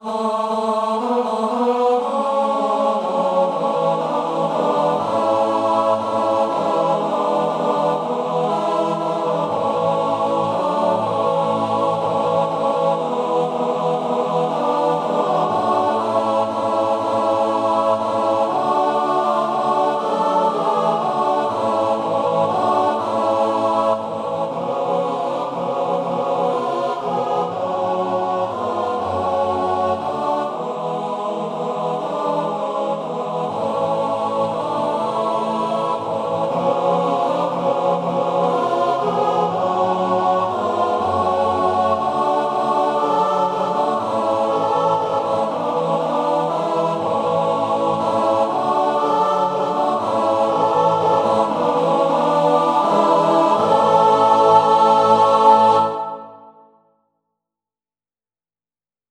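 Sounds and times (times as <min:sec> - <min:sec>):
four-part male choir singing: 0:00.0 - 0:56.6.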